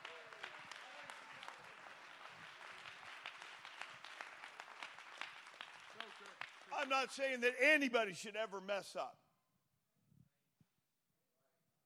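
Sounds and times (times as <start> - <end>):
crowd clapping hands: 0.0 - 7.9
speech: 6.8 - 9.2.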